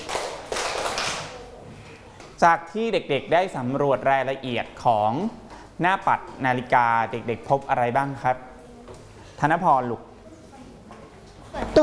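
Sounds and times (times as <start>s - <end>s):
children clapping hands: 0.0s - 1.5s
speech: 2.4s - 8.5s, 9.4s - 10.1s, 11.5s - 11.8s.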